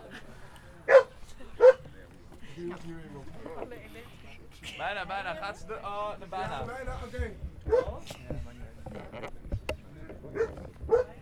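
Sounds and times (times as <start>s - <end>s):
dog barking: 0.9s - 1.8s, 7.7s - 8.0s, 10.3s - 11.2s
speech: 2.6s - 8.4s.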